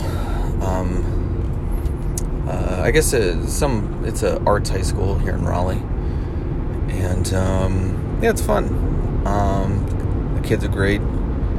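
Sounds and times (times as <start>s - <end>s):
interior road noise from a moving car: 0.0s - 11.5s
speech: 2.8s - 5.9s, 7.0s - 9.9s, 10.5s - 11.2s.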